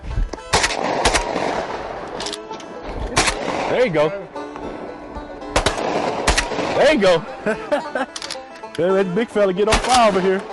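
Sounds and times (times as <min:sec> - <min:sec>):
gunshots fired into the water: 0:00.5 - 0:04.8, 0:05.5 - 0:07.3, 0:09.7 - 0:10.5
speech: 0:03.7 - 0:04.3, 0:06.8 - 0:08.2, 0:08.8 - 0:10.5
laughter: 0:07.2 - 0:09.2.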